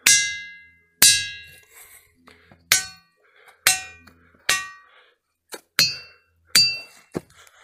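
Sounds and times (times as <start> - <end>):
resonant tonal rocks being struck: 0.0 - 1.6, 2.5 - 7.3.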